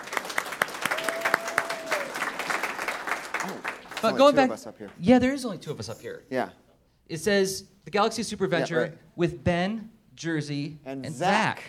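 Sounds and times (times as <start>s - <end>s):
audience applause: 0.0s - 4.7s
speech: 4.0s - 11.6s.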